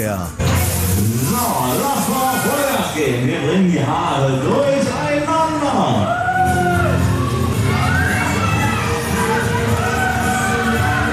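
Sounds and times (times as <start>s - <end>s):
speech: 0.0s - 0.4s, 1.0s - 4.9s
riders whooping on fairground ride: 6.0s - 11.1s.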